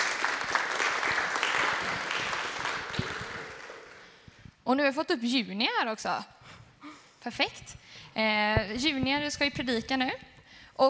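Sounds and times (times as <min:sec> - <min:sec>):
applause in church: 0:00.0 - 0:04.4
speech: 0:04.7 - 0:06.4, 0:07.2 - 0:10.8.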